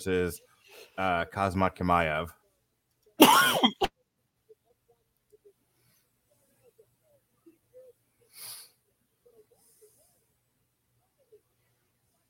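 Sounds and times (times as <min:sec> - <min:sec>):
speech: 0:00.0 - 0:02.4
man coughing while choking on a cinnamon heart candy: 0:03.2 - 0:03.9.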